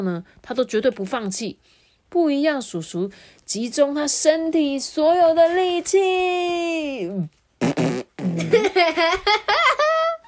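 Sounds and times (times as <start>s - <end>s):
speech: 0.0s - 9.8s
voice imitating a fart with a raspberry: 7.6s - 8.7s.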